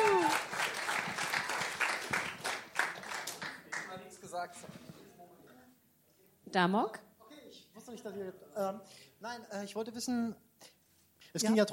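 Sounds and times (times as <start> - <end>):
crowd applause: 0.0 - 4.0
speech: 4.4 - 4.8, 6.5 - 7.0, 7.9 - 10.4, 11.3 - 11.7.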